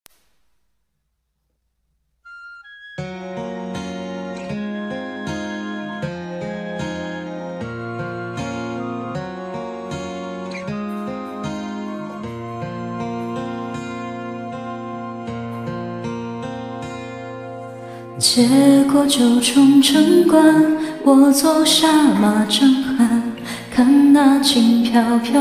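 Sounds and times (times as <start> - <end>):
person singing a cover song: 18.2 - 25.3.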